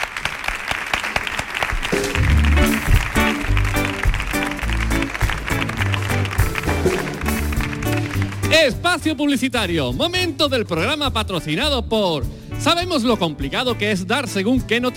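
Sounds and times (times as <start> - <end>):
audience applause: 0.0 - 8.8
speech: 8.6 - 14.9.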